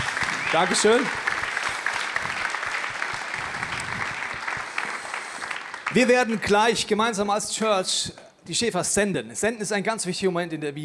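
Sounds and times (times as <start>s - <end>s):
audience applause: 0.0s - 6.6s
speech: 0.5s - 1.3s, 6.0s - 10.8s.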